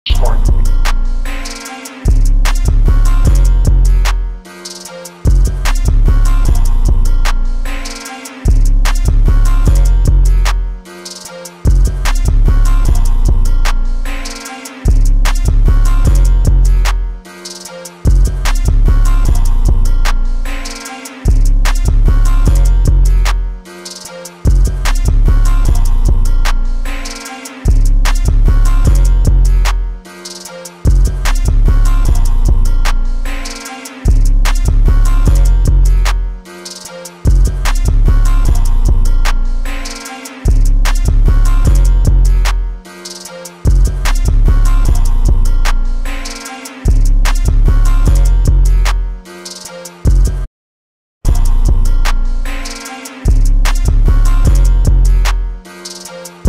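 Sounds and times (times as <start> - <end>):
instrumental music: 0.0 - 50.4, 51.3 - 56.4.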